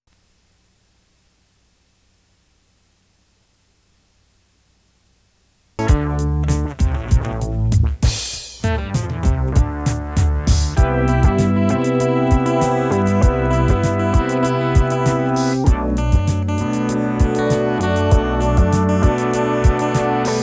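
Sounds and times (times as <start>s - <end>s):
rhythm music: 5.8s - 20.4s.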